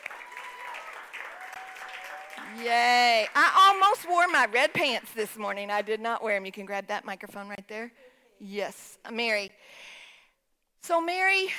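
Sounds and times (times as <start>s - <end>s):
audience applause for a speaker at a church gathering: 0.0s - 3.5s
speech: 2.5s - 9.9s, 10.8s - 11.5s.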